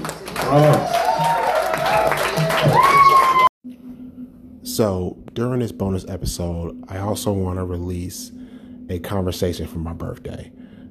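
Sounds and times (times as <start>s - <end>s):
audience applause and cheering: 0.0s - 3.6s
speech: 0.4s - 1.0s, 4.8s - 10.8s.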